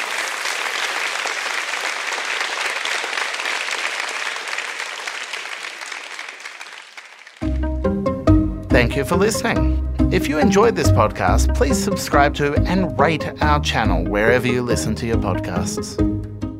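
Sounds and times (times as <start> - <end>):
audience applause: 0.0 - 7.7
speech: 8.8 - 16.1.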